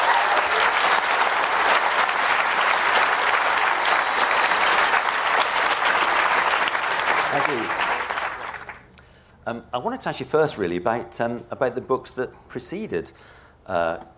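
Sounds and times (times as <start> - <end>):
crowd applause: 0.0 - 8.9
speech: 7.5 - 7.8, 9.5 - 14.1.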